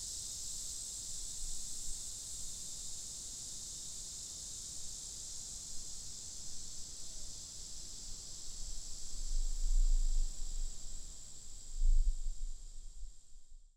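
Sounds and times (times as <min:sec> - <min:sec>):
lyric cicada: 0:00.0 - 0:13.7.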